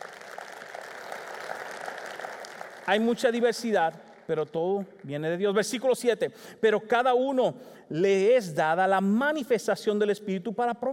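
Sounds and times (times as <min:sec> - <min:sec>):
audience applause: 0:00.0 - 0:04.8
speech: 0:02.9 - 0:10.9.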